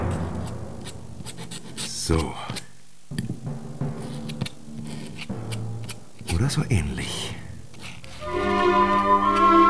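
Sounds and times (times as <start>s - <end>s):
quill pen scratching on paper: 0.1s - 9.5s
speech: 2.1s - 2.5s, 6.4s - 7.3s.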